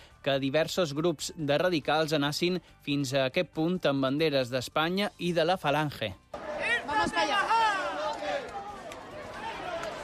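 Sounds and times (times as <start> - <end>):
speech: 0.2 - 6.3, 7.0 - 7.3
crowd shouting and chanting at protest camp: 6.3 - 10.0.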